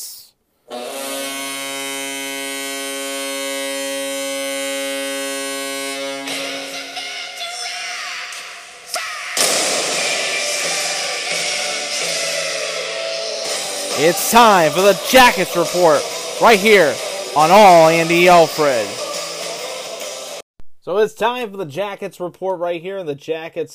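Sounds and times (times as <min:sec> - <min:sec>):
cannon fire sound effect: 0:09.4 - 0:10.6
speech: 0:14.0 - 0:19.0, 0:20.8 - 0:23.7.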